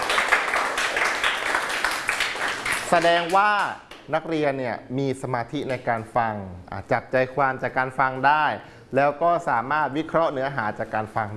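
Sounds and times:
students clapping for themselves: 0:00.0 - 0:04.1
speech: 0:02.9 - 0:11.3.

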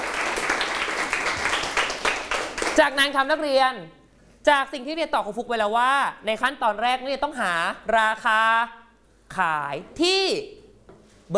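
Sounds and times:
students clapping in a classroom during a maths lesson: 0:00.0 - 0:02.8
speech: 0:02.8 - 0:10.6.

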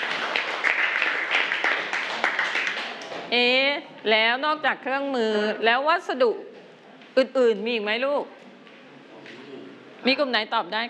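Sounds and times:
classroom group applause: 0:00.0 - 0:03.3
speech: 0:03.3 - 0:06.5, 0:07.2 - 0:08.4, 0:10.0 - 0:10.8.

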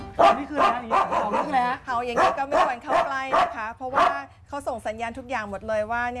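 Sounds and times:
dog barking: 0:00.2 - 0:04.3
speech: 0:01.9 - 0:06.1.

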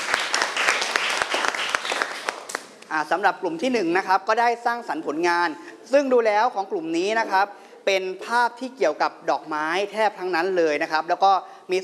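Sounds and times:
audience applause: 0:00.0 - 0:02.6
speech: 0:02.9 - 0:11.8.

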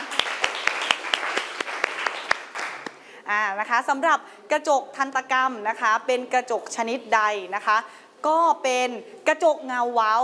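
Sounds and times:
classroom applause: 0:00.0 - 0:03.0
speech: 0:03.3 - 0:10.2.

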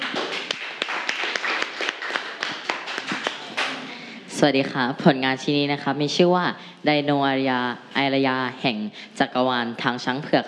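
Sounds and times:
audience applause for a student: 0:00.0 - 0:04.2
speech: 0:04.4 - 0:10.4.

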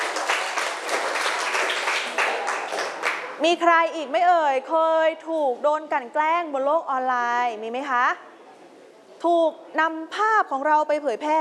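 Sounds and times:
students clapping in a classroom: 0:00.0 - 0:03.4
speech: 0:03.4 - 0:08.3, 0:09.2 - 0:11.3.

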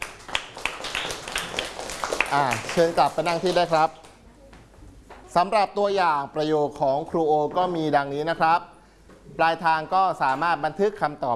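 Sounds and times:
classroom applause for a student: 0:00.0 - 0:04.2
speech: 0:02.3 - 0:04.0, 0:05.3 - 0:08.7, 0:09.3 - 0:11.3.

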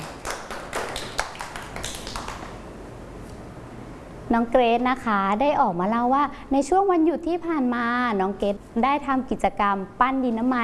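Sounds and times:
children clapping: 0:00.0 - 0:02.6
speech: 0:04.3 - 0:10.6.

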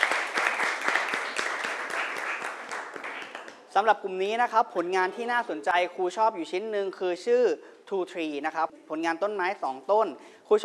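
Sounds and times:
classroom applause for a student group: 0:00.0 - 0:03.9
speech: 0:03.8 - 0:10.6.

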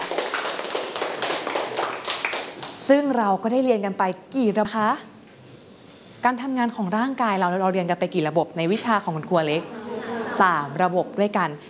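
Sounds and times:
school class clapping for a classmate: 0:00.0 - 0:02.8
speech: 0:02.9 - 0:05.1, 0:06.2 - 0:09.8, 0:10.4 - 0:11.6.

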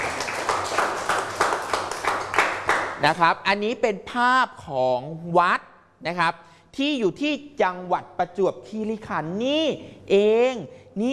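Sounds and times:
hands clapping for a classmate in a class session: 0:00.0 - 0:03.2
speech: 0:03.0 - 0:11.1.

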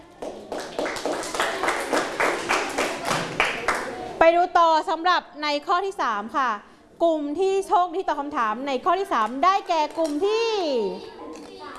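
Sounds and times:
classroom group clapping in unison: 0:00.0 - 0:04.0
speech: 0:04.6 - 0:11.2.

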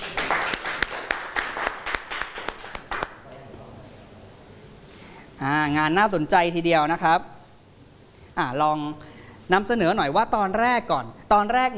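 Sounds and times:
class of students clapping: 0:00.0 - 0:03.2
speech: 0:05.4 - 0:07.3, 0:08.4 - 0:11.7.

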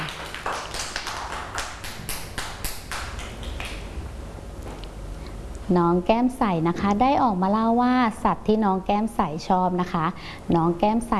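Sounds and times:
children clapping: 0:00.0 - 0:03.9
speech: 0:05.7 - 0:11.1.

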